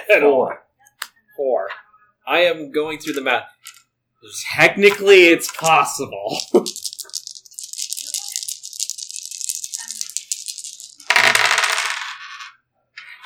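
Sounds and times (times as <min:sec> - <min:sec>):
speech: 0:00.1 - 0:00.6, 0:01.4 - 0:07.2
dice rattling in a cup or hand and clattering out: 0:03.0 - 0:03.8, 0:04.8 - 0:13.2.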